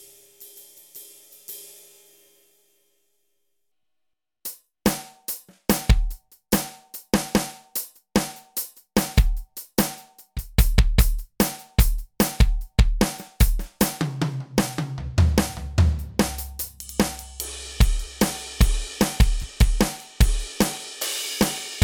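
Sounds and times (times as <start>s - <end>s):
Roland SPD 20 PRO electronic drum kits: 8.2s - 21.8s.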